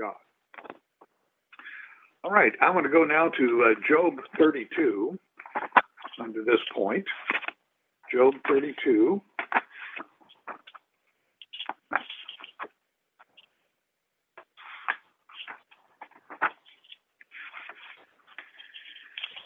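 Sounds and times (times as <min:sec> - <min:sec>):
speech: 0:00.0 - 0:00.3, 0:02.2 - 0:07.4, 0:08.1 - 0:09.3
pages of a book being turned: 0:00.6 - 0:01.1, 0:05.4 - 0:07.6, 0:09.4 - 0:13.5, 0:14.4 - 0:19.4.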